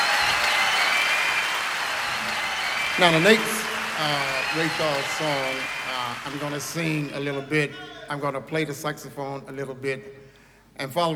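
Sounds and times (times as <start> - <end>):
audience applause at a live big band concert: 0.0 - 7.4
speech: 3.0 - 10.2, 10.8 - 11.1.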